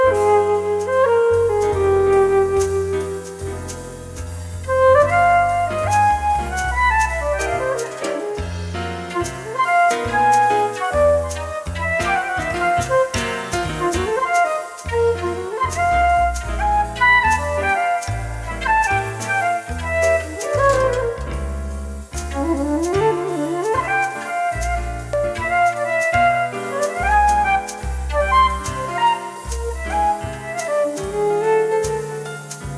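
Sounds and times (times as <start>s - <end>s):
jazz flute: 0.0s - 32.7s.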